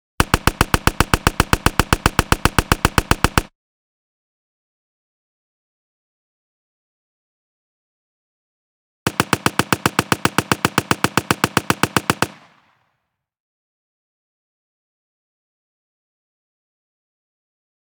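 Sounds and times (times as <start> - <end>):
machine gun firing: 0.2 - 3.5, 9.1 - 12.8.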